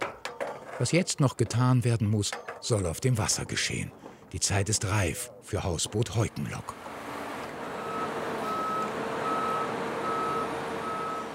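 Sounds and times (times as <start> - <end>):
speech: 0.8 - 7.0
heavy truck engine rumbling: 5.5 - 11.3
heavy five-axle truck reversing alarm beeps: 7.0 - 11.3.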